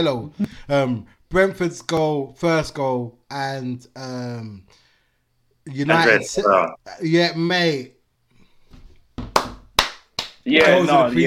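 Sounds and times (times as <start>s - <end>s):
speech: 0.0s - 4.8s, 5.6s - 8.0s, 10.4s - 11.2s
hand clapping: 9.2s - 11.2s.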